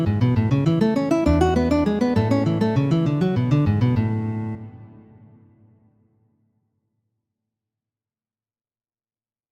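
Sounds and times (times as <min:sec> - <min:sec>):
guitar waltzes: 0:00.0 - 0:04.7.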